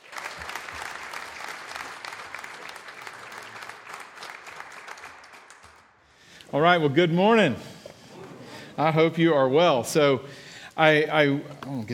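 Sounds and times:
church congregation applauding a guest speaker: 0.0s - 6.4s
speech: 6.5s - 7.7s, 8.8s - 11.9s.

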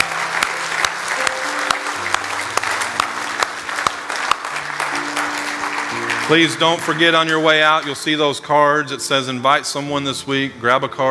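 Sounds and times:
hand clapping: 0.0s - 8.0s
speech: 6.3s - 11.0s.

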